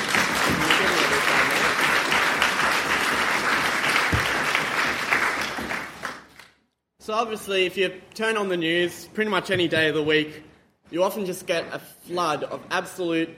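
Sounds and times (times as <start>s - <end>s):
crowd applause welcoming a speaker at a talk on marriage equality: 0.0s - 6.4s
speech: 7.1s - 13.3s.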